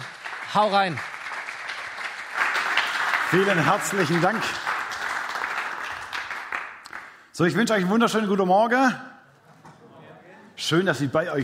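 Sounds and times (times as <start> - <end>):
audience applause: 0.0 - 7.2
speech: 0.5 - 1.1, 3.3 - 4.7, 7.4 - 9.1, 10.7 - 11.4.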